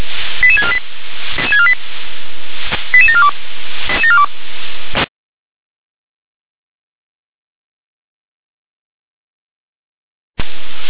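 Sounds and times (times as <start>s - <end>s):
radio static clicks and hiss: 0.0s - 5.1s, 10.4s - 10.8s
radio alerting tones of stepped electronic beeps: 0.4s - 0.8s, 1.4s - 1.8s, 2.9s - 4.3s.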